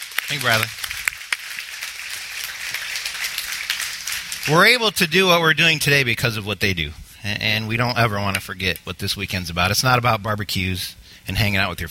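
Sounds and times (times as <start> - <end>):
crowd clapping: 0.0 - 5.5
speech: 0.3 - 0.8, 4.4 - 11.8.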